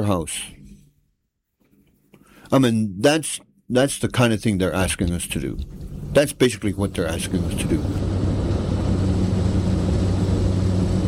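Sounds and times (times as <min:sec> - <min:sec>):
speech: 0:00.0 - 0:00.6, 0:02.5 - 0:08.1
airplane engine droning in flight: 0:05.4 - 0:11.0.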